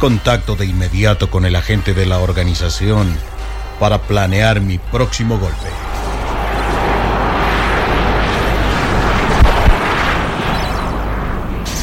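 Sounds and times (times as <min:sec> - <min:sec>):
speech: 0:00.0 - 0:06.0
small jet landing and taxiing at an airport: 0:03.1 - 0:11.8.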